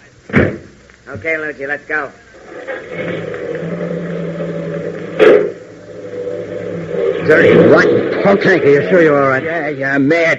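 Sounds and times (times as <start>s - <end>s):
speech: 0.3s - 2.2s, 7.3s - 10.3s
car driving away: 2.4s - 9.6s.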